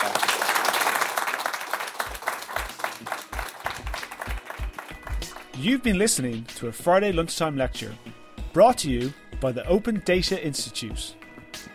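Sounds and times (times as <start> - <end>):
audience applause: 0.0 - 5.5
speech: 5.6 - 11.2.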